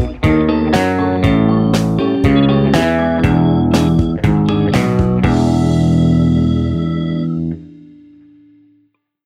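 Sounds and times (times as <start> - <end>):
fast guitar riffs: 0.0 - 8.8.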